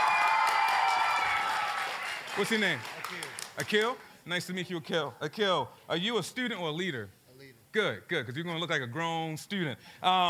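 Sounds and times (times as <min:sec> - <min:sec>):
audience cheering: 0:00.0 - 0:03.4
audience applause: 0:00.0 - 0:04.0
speech: 0:02.4 - 0:10.2.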